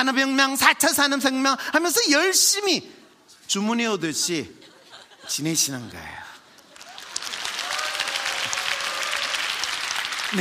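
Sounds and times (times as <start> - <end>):
speech: 0.0 - 4.7, 5.3 - 6.3
laughter: 4.6 - 6.0
audience applause: 6.7 - 10.4.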